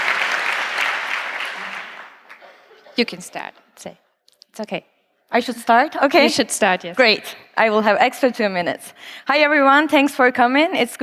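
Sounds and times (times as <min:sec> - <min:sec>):
conference audience applause for a speaker: 0:00.0 - 0:02.6
speech: 0:03.0 - 0:04.0, 0:04.6 - 0:11.0.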